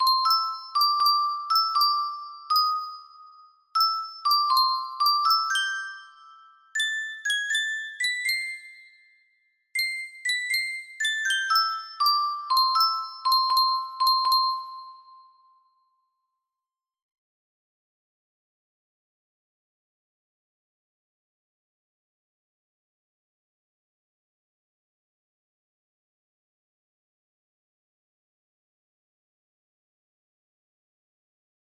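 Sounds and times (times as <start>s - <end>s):
Irish lullaby on a music box: 0.0s - 16.6s.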